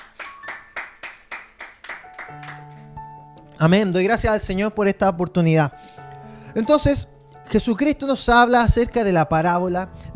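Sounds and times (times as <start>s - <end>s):
audience applause: 0.0s - 2.7s
speech: 2.3s - 2.6s, 3.6s - 6.0s, 6.6s - 10.1s.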